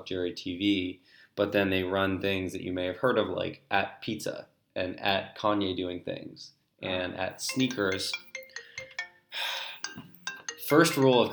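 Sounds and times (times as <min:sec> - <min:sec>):
speech: 0:00.0 - 0:08.3, 0:10.7 - 0:11.3
mobile phone ringing: 0:07.3 - 0:11.3.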